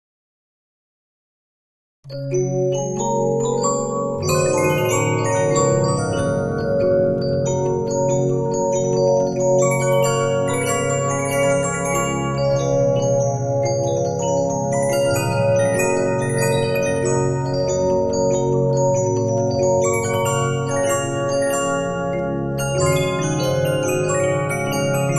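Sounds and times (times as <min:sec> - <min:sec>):
Regina 15-inch disc music box: 0:02.1 - 0:25.1.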